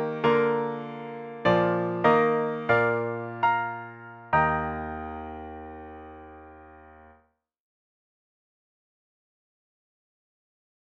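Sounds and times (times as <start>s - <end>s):
piano: 0.0s - 7.4s.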